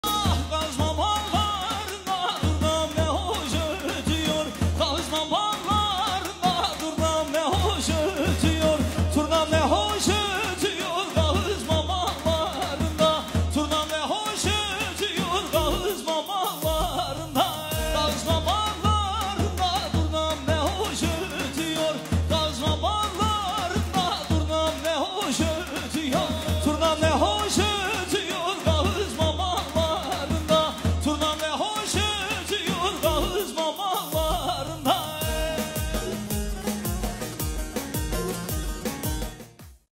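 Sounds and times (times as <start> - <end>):
halay folk dance music from Erzurum and Kars: 0.0 - 39.9.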